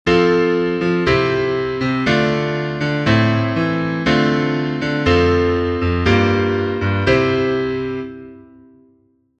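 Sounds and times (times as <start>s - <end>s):
piano: 0.0s - 9.3s.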